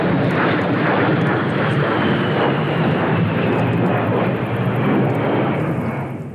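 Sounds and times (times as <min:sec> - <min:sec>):
A-10 Warthog jet aircraft flying overhead: 0:00.0 - 0:06.3.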